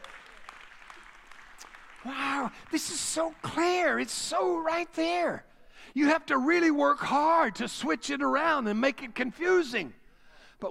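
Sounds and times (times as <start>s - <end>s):
audience hand clapping: 0.0s - 4.1s
speech: 2.0s - 10.0s.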